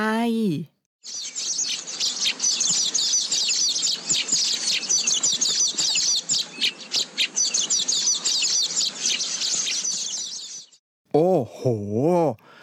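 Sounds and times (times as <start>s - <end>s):
speech: 0.0s - 1.4s, 11.1s - 12.5s
chorus of many birds chirping and twittering: 1.0s - 10.8s.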